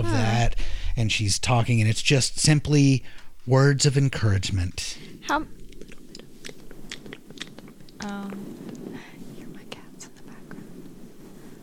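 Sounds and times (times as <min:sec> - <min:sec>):
speech: 0:01.0 - 0:05.6, 0:08.0 - 0:08.8
ASMR mouth smacking: 0:05.6 - 0:08.8.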